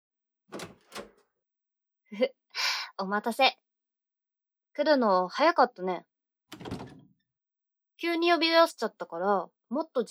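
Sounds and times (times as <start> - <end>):
door being opened with dull clunks and clicks: 0.5 - 1.3, 6.5 - 7.2
speech: 2.1 - 2.4, 3.0 - 3.6, 4.8 - 6.6, 8.0 - 10.0.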